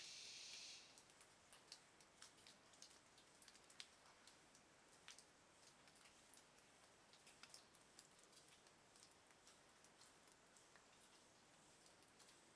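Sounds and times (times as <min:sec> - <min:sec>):
cicadas oscillating: 0:00.0 - 0:00.8
heavy water dripping inside a cave: 0:00.0 - 0:12.5.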